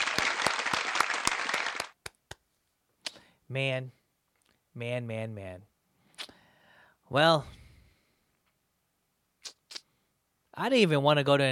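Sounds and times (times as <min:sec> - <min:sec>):
applause: 0:00.0 - 0:02.2
speech: 0:03.5 - 0:04.0, 0:04.8 - 0:05.7, 0:07.1 - 0:07.6, 0:10.6 - 0:11.4.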